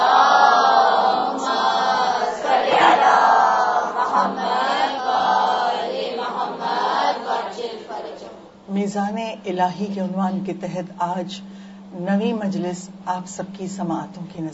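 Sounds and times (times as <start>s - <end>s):
crowd at a religious majlis loudly chanting salawat: 0.0s - 8.6s
speech: 8.9s - 14.5s.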